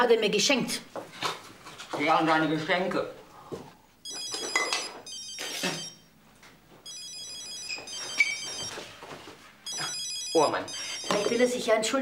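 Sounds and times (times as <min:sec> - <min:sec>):
speech: 0:00.0 - 0:01.3, 0:02.0 - 0:03.7, 0:10.4 - 0:12.0
telephone ringing: 0:04.0 - 0:06.1, 0:06.8 - 0:08.9, 0:09.7 - 0:11.7.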